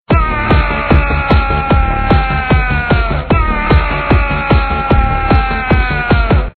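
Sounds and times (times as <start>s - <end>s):
person yelling: 0.1s - 6.5s.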